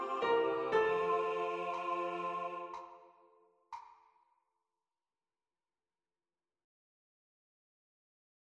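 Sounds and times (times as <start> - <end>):
whole tone lower tenor piano notes: 0.0 - 2.8.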